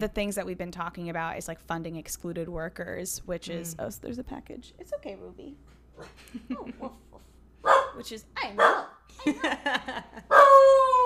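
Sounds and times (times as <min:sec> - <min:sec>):
speech: 0:00.0 - 0:11.0
laughter: 0:06.2 - 0:07.2, 0:09.1 - 0:10.3
part-beagle dog howling: 0:10.3 - 0:11.0.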